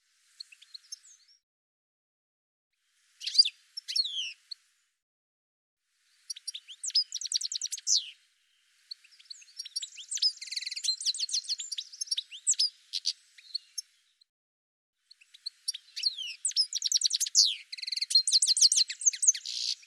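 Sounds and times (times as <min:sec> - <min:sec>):
bird twittering chirps and trills: 0:03.2 - 0:04.4, 0:06.3 - 0:08.2, 0:08.9 - 0:13.9, 0:15.1 - 0:19.8.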